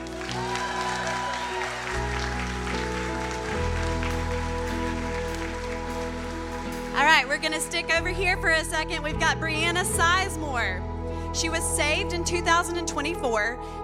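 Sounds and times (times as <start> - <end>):
audience cheering loudly: 0.0 - 7.0
speech: 7.2 - 13.8.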